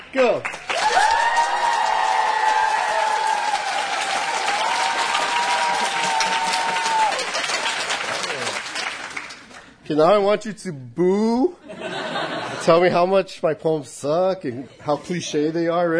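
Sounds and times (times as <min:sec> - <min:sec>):
crowd applauding: 0:00.0 - 0:09.8
speech: 0:00.1 - 0:00.6, 0:09.9 - 0:11.4, 0:12.7 - 0:15.9
crowd cheering and whooping: 0:00.7 - 0:08.6
laughter: 0:11.6 - 0:13.0.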